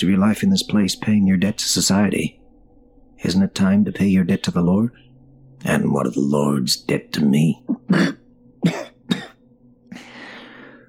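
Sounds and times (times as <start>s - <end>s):
speech: 0.0s - 2.4s, 3.2s - 8.8s
wet bloody cough: 7.7s - 9.4s.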